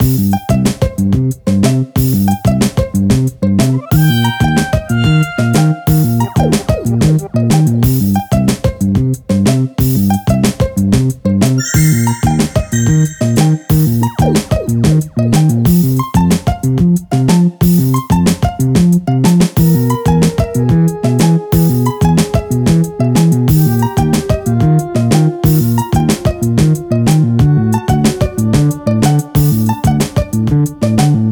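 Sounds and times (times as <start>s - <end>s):
music: 0.0s - 31.2s.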